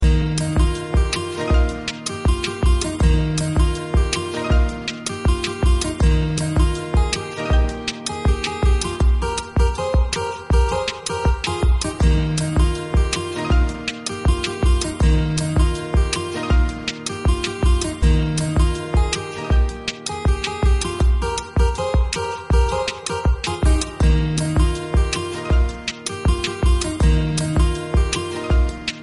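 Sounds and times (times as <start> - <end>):
guitar melody: 0.0 - 29.0.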